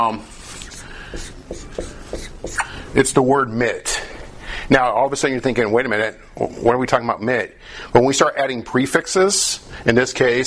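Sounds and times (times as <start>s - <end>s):
speech: 0.0s - 0.3s, 1.1s - 1.9s, 2.9s - 4.0s, 4.7s - 10.4s
marker or chalk scratching across a board: 0.5s - 2.7s.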